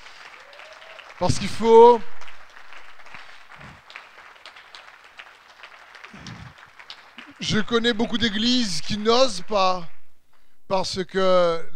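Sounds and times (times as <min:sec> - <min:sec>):
church congregation applauding its leadership: 0:00.0 - 0:07.8
speech: 0:01.2 - 0:02.2, 0:07.5 - 0:09.9, 0:10.7 - 0:11.7.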